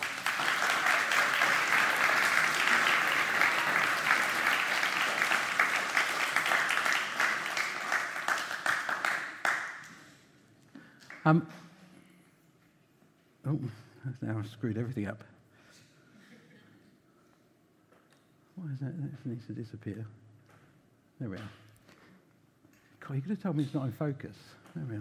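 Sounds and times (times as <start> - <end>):
audience clapping: 0.0 - 10.2, 10.9 - 11.4
speech: 11.3 - 11.7, 13.5 - 15.3, 18.8 - 20.3, 21.2 - 21.6, 23.1 - 24.9.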